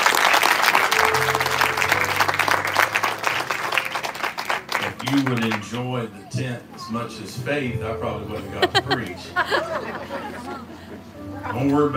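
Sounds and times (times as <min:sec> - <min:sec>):
audience applause: 0:00.0 - 0:05.9
speech: 0:05.1 - 0:11.9
laughter: 0:08.4 - 0:11.9.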